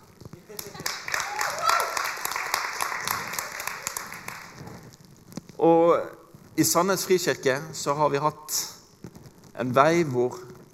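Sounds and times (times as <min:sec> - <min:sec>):
audience applause: 0:00.5 - 0:04.8
speech: 0:05.6 - 0:08.8, 0:09.6 - 0:10.5.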